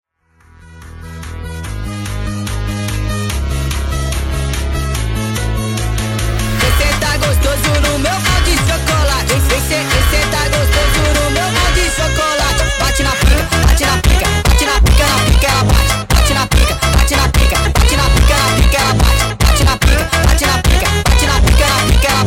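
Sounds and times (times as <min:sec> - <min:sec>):
nightcore music: 0:00.3 - 0:22.2.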